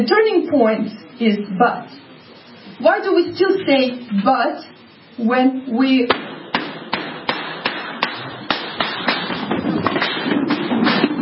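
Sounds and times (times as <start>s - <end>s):
speech: 0.0s - 2.0s, 2.8s - 6.3s
gunfire from gunmen opening fire in an attack in Denmark: 6.1s - 11.1s.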